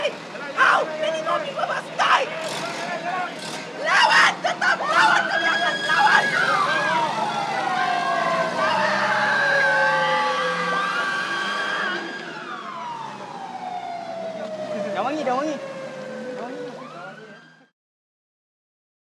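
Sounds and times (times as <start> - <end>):
excited voices: 0.0 - 12.0
police van siren at arrest scene: 3.8 - 17.7.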